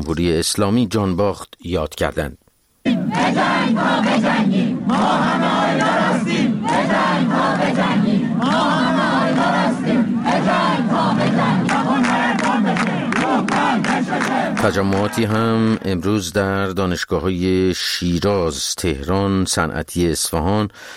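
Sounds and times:
speech: 0.0 - 2.4, 3.1 - 9.0, 14.1 - 20.9
students chanting at a protest gathering: 2.8 - 15.7.

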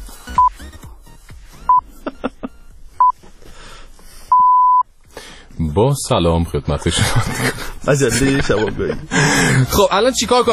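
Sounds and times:
time signal pips before news: 4.3 - 4.9
speech: 5.8 - 10.5.

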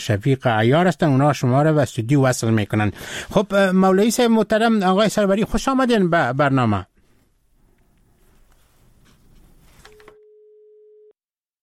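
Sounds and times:
speech: 0.0 - 6.9
telephone line tone after a dropped call: 9.8 - 11.2.

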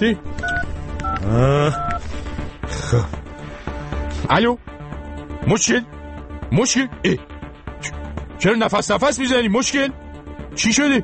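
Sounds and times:
speech: 0.0 - 0.6, 1.2 - 2.0, 2.9 - 3.2, 4.2 - 4.7, 5.4 - 10.0, 10.6 - 11.0
telephone keypad tones as a number is dialed: 0.4 - 2.0.

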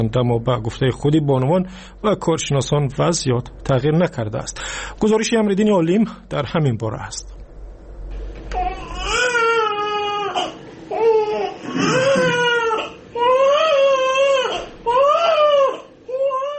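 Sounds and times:
speech: 0.0 - 7.4
newborn baby crying: 8.5 - 16.5.

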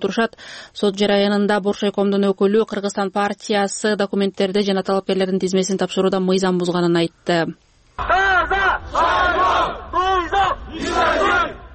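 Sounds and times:
speech: 0.0 - 9.4
protesters chanting in front of Kyrgyzstan's Supreme Court: 8.0 - 11.7.

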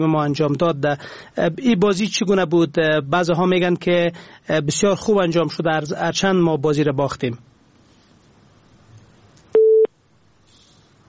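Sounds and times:
speech: 0.0 - 7.5
telephone busy tone after call disconnects: 9.6 - 9.9.

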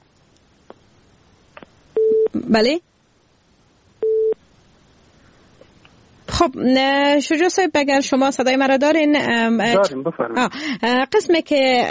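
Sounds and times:
telephone busy signal from a call failing to connect: 2.0 - 2.3, 4.0 - 4.4
speech: 2.4 - 2.9, 6.4 - 11.8.

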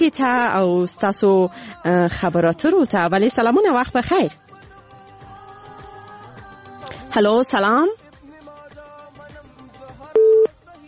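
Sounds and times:
speech: 0.0 - 4.5, 7.1 - 8.0
telephone busy tone after a dropped call: 10.2 - 10.5.

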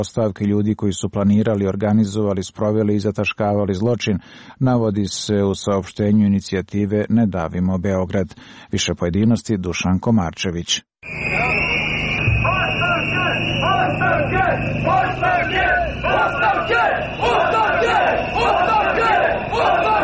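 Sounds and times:
speech: 0.0 - 11.5
shrill protest whistles: 11.0 - 20.0
dense street crowd shouting and chattering: 11.2 - 20.0.

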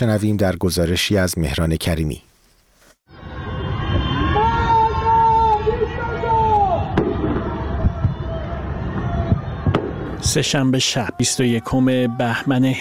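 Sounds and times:
speech: 0.0 - 2.3, 10.2 - 12.7
protest shouts from windows at night: 3.8 - 12.7.

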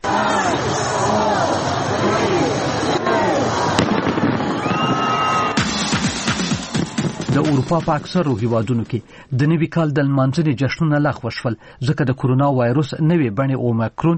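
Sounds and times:
crowd chattering and cheering at New Year celebrations in Sydney: 0.0 - 8.8
New Year fireworks in Sydney, Australia crackling and banging: 2.6 - 8.8
speech: 7.4 - 14.1.

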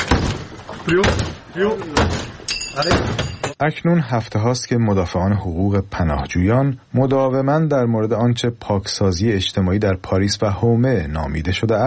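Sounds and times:
heavy bangs of police forcing a room door open: 0.0 - 2.3
speech: 0.9 - 11.8.

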